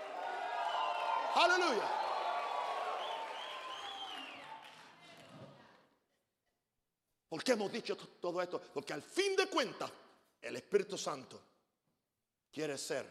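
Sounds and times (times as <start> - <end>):
audience shouting and cheering: 0.0 - 4.8
speech: 1.4 - 2.0, 7.4 - 11.5, 12.5 - 13.1.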